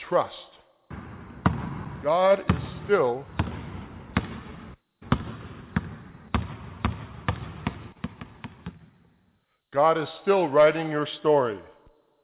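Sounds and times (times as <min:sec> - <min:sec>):
speech: 0:00.1 - 0:00.4, 0:02.0 - 0:03.3, 0:09.8 - 0:11.7
ball bouncing on a hard surface: 0:00.9 - 0:01.9, 0:02.5 - 0:09.0.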